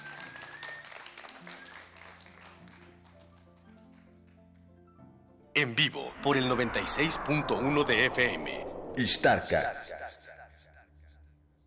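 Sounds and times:
large audience applause in a hall: 0:00.0 - 0:04.0
speech: 0:05.6 - 0:09.9.

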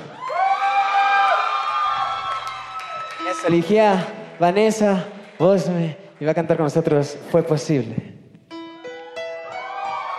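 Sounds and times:
audience cheering: 0:00.0 - 0:05.8, 0:09.4 - 0:10.1
audience applause: 0:00.1 - 0:07.0
speech: 0:03.4 - 0:08.2.

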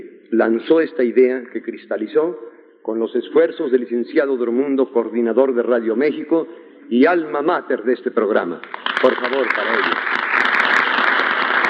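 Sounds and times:
speech: 0:00.3 - 0:10.2
applause: 0:08.6 - 0:11.6.

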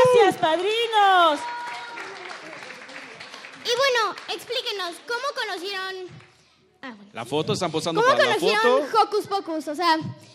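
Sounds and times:
audience applause: 0:00.0 - 0:06.2
speech: 0:00.4 - 0:01.6, 0:03.6 - 0:06.2, 0:06.8 - 0:10.3.

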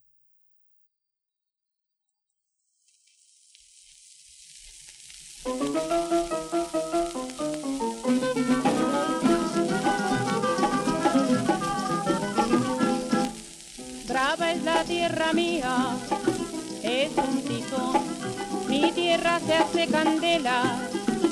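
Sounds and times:
sizzling noise: 0:02.6 - 0:21.3
recorded song: 0:05.5 - 0:21.3
speech: 0:16.9 - 0:21.0.

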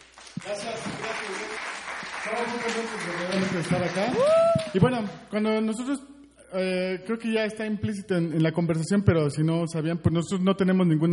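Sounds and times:
audience applause: 0:00.0 - 0:04.9
speech: 0:00.4 - 0:11.1
shout or cheer: 0:04.0 - 0:04.8.

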